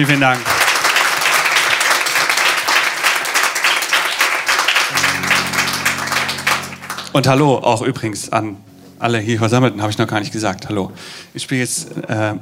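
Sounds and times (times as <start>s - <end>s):
speech: 0.0s - 0.5s, 7.1s - 12.4s
audience applause: 0.0s - 7.4s
low steady tone: 4.9s - 11.0s.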